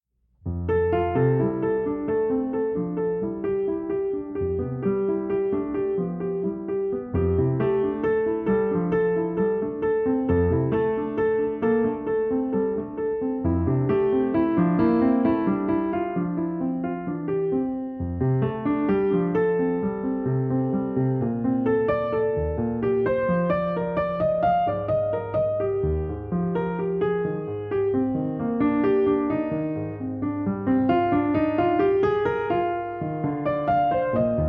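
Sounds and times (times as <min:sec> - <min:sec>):
improvised music: 0:00.5 - 0:34.4.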